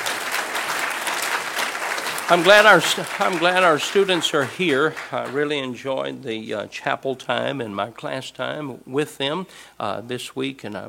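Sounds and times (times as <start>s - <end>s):
applause from a church congregation: 0.0s - 5.8s
speech: 2.3s - 10.8s.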